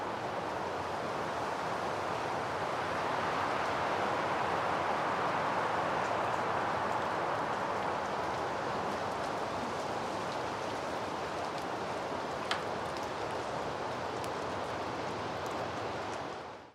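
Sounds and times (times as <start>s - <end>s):
wind in the forest: 0.0s - 16.7s.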